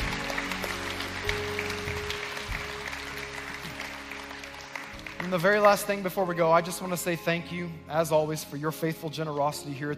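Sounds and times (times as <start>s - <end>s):
church congregation applauding to welcome new believers: 0.0s - 7.2s
speech: 5.3s - 9.9s.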